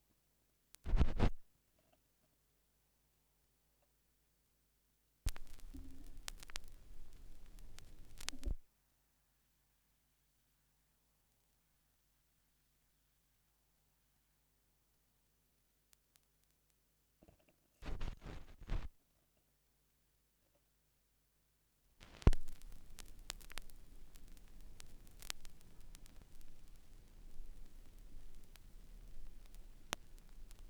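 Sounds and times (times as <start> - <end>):
vinyl record noise: 0.8 - 1.4, 5.3 - 8.6, 17.8 - 19.0, 22.0 - 30.6.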